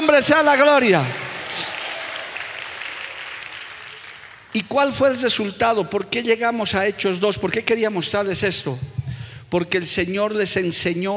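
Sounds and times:
speech: 0:00.1 - 0:01.2, 0:04.5 - 0:11.1
audience applauding: 0:00.5 - 0:04.6.

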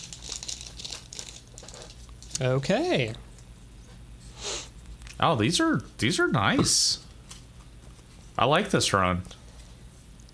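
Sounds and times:
trading card pack wrappers crinkling as torn open: 0:00.0 - 0:03.1
speech: 0:02.4 - 0:03.3, 0:05.2 - 0:07.0, 0:08.4 - 0:09.4.

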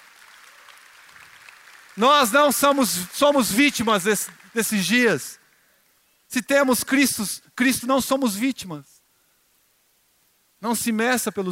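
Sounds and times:
audience applause: 0:00.0 - 0:05.3
speech: 0:02.0 - 0:05.4, 0:06.3 - 0:08.9, 0:10.6 - 0:11.5.

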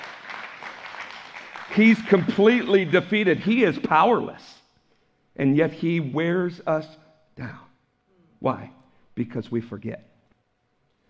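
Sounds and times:
audience applauding: 0:00.0 - 0:03.4
speech: 0:01.7 - 0:04.6, 0:05.4 - 0:07.6, 0:08.4 - 0:10.1.

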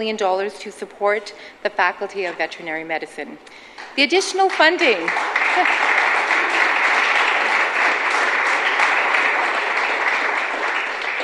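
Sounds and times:
speech: 0:00.0 - 0:05.9
audience applause: 0:04.5 - 0:11.2.

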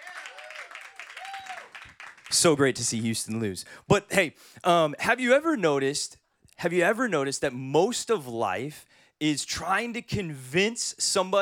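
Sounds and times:
audience clapping: 0:00.0 - 0:02.9
speech: 0:02.3 - 0:11.4.

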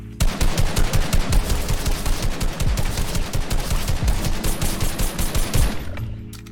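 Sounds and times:
rapid automatic gunfire in the video game Fortnite: 0:00.2 - 0:06.0.

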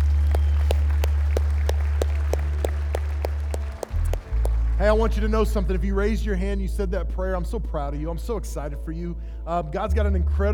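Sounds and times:
steady rhythmic clapping: 0:00.0 - 0:06.9
sustained low droning tone: 0:00.0 - 0:10.5
speech: 0:04.8 - 0:10.5.

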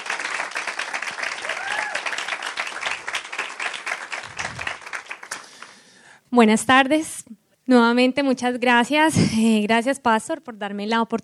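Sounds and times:
audience applause: 0:00.0 - 0:05.8
speech: 0:06.3 - 0:11.2.

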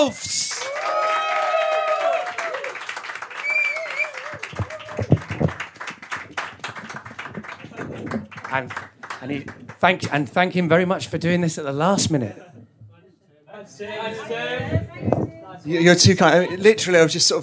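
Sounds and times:
speech: 0:00.0 - 0:01.0, 0:08.5 - 0:12.5, 0:13.7 - 0:17.4
audience applause for a storyteller coming on stage: 0:00.0 - 0:09.8.

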